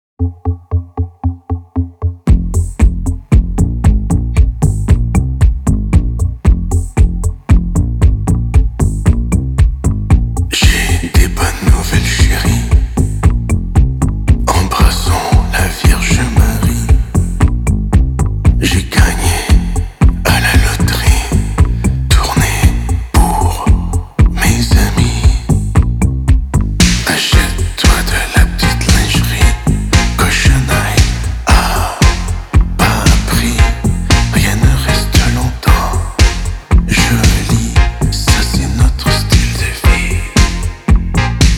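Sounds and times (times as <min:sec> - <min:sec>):
disco music: 0:00.2 - 0:41.5.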